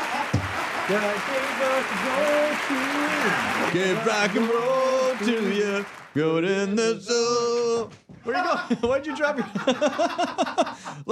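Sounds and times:
laughter: 0:00.0 - 0:05.8, 0:08.3 - 0:11.1
wavering cheering vocal tones: 0:00.0 - 0:06.3
applause sound effect crowd clapping: 0:00.0 - 0:06.4
speech: 0:00.9 - 0:11.1.

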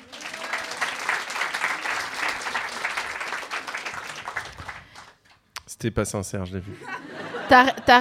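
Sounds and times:
audience applause: 0:00.0 - 0:05.2
speech: 0:05.8 - 0:07.9
laughter: 0:06.6 - 0:07.9.

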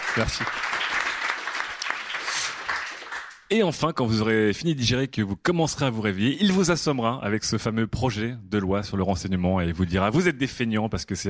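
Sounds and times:
audience applause: 0:00.0 - 0:03.5
speech: 0:00.2 - 0:00.8, 0:03.5 - 0:11.2.

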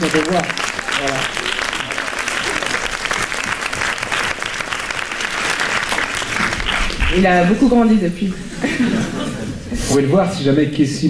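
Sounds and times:
audience applause: 0:00.0 - 0:07.4
speech: 0:00.1 - 0:01.4, 0:07.1 - 0:11.0
laughter: 0:08.4 - 0:09.9.

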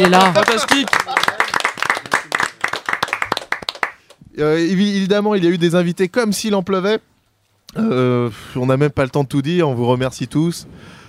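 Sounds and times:
speech: 0:00.0 - 0:01.2, 0:04.4 - 0:07.1, 0:07.7 - 0:11.0
applause: 0:00.0 - 0:04.2.

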